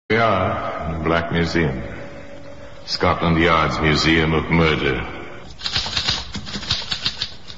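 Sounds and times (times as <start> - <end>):
speech: 0.1 - 2.0, 2.9 - 5.8
typewriter keys clattering: 5.6 - 7.5.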